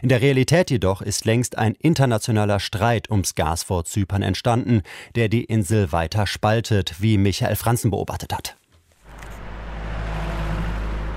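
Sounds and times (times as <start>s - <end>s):
speech: 0.0s - 8.6s
rush-hour car traffic in central Nicosia, Cyprus: 9.0s - 11.1s.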